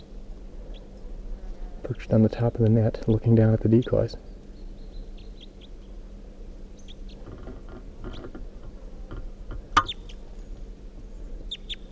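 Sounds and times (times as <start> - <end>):
steady low hum: 0.0 - 11.9
speech: 1.9 - 4.3
male red crossbill chirping calls: 3.7 - 6.0, 6.8 - 8.4, 9.8 - 10.6, 11.2 - 11.9.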